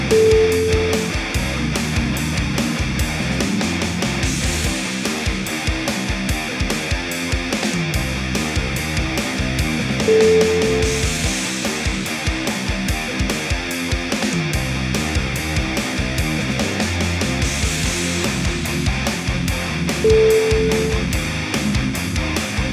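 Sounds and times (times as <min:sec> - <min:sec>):
groove metal music: 0:00.0 - 0:22.7.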